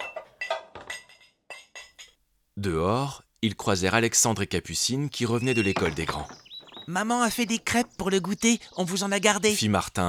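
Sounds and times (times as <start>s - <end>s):
dishes clinking as a table is cleared: 0.0s - 2.2s, 5.4s - 8.0s
speech: 2.6s - 10.0s.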